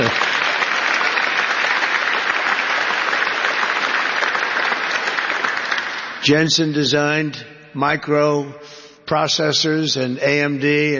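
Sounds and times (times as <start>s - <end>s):
audience applause: 0.0s - 6.3s
speech: 6.3s - 10.9s.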